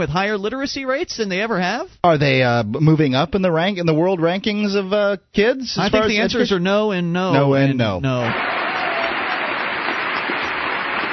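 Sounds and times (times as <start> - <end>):
speech: 0.0 - 8.5
audience applause during President Bush's State of the Union address: 8.2 - 11.1.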